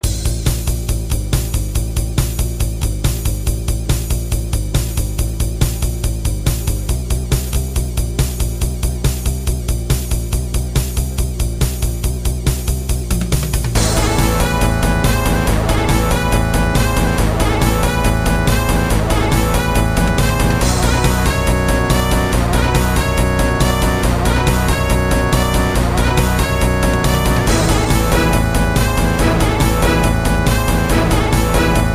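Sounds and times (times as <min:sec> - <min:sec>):
final boss battle music loop: 0:00.0 - 0:31.9.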